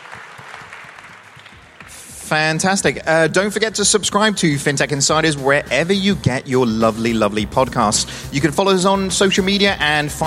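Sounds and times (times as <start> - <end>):
audience applause: 0.0 - 2.4
speech: 2.3 - 10.2.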